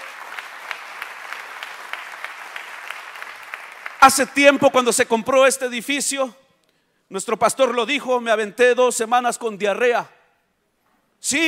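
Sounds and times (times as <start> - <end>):
audience applauding: 0.0 - 4.2
speech: 4.0 - 6.4, 7.1 - 10.2, 11.2 - 11.4.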